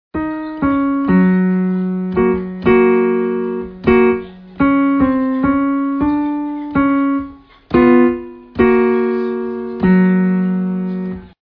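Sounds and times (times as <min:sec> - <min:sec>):
piano: 0:00.1 - 0:11.4.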